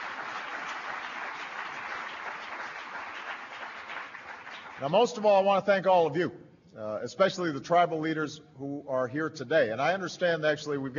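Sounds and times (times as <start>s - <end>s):
audience applause: 0.0s - 4.9s
speech: 4.8s - 10.9s.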